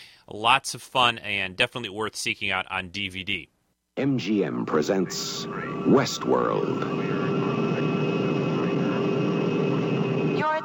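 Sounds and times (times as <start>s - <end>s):
speech: 0.3s - 7.3s
aircraft engine drone while landing: 4.7s - 10.6s.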